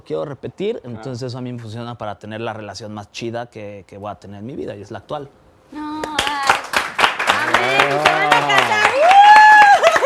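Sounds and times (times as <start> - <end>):
speech: 0.0 - 5.8
people clapping: 6.0 - 10.0.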